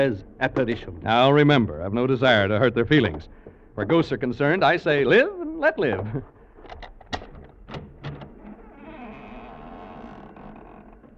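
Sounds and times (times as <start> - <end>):
speech: 0.0 - 6.8
door hinge creaking: 6.7 - 11.1
front door opening: 6.7 - 11.1.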